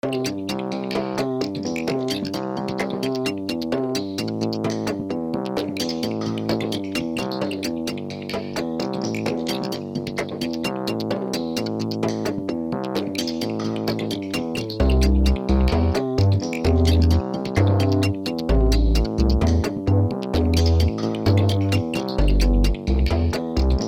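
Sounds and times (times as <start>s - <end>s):
wobble bass: 0.6s - 23.8s.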